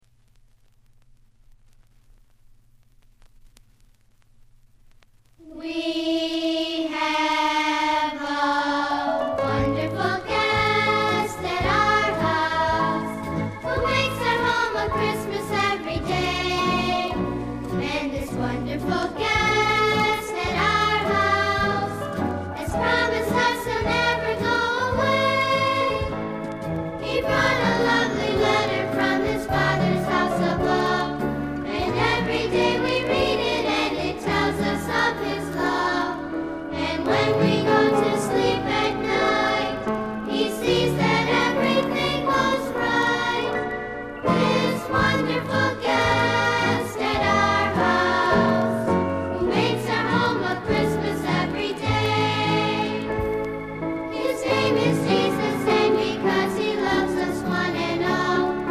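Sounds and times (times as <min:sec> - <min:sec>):
choir singing: 0:05.4 - 0:26.4, 0:27.0 - 0:53.4, 0:54.0 - 0:58.6.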